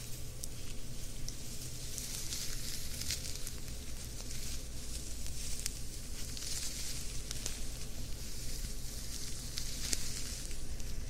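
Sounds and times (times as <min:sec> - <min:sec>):
ear massage and fabric scratching rustle: 0:00.0 - 0:11.0.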